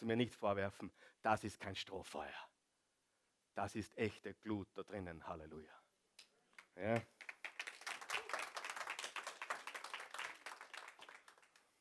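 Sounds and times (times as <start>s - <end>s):
speech: 0.0s - 2.5s, 3.6s - 5.8s, 6.8s - 7.3s
sparse audience applause: 6.9s - 11.6s.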